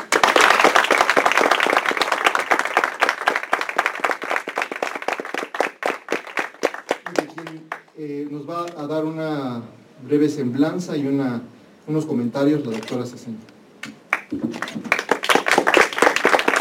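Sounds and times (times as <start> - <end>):
audience applause: 0.0 - 7.8, 14.1 - 16.5
speech: 8.0 - 13.5.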